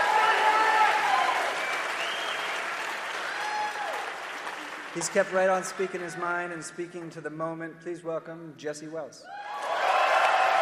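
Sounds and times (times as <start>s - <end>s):
audience applause: 0.0s - 6.2s, 9.4s - 10.5s
speech: 5.0s - 9.4s.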